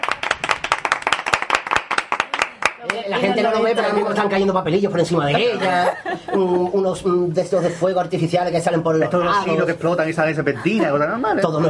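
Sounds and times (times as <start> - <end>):
audience applauding: 0.0 - 3.3
speech: 2.8 - 11.6
laughter: 5.1 - 8.0, 10.4 - 11.6.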